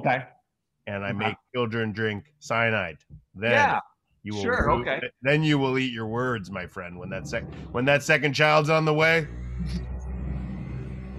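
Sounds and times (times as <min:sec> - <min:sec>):
speech: 0:00.0 - 0:09.9
vacuum cleaner running upstairs: 0:09.2 - 0:11.1.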